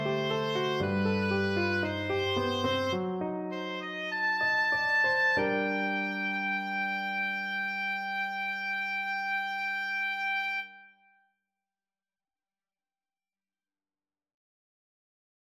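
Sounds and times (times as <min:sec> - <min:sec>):
oboe: 0:00.0 - 0:11.1.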